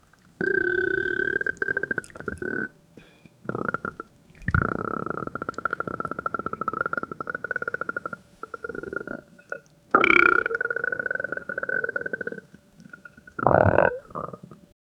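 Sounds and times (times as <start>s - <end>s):
stomach gurgling from a stomach ache: 0.0s - 2.8s, 3.4s - 14.7s.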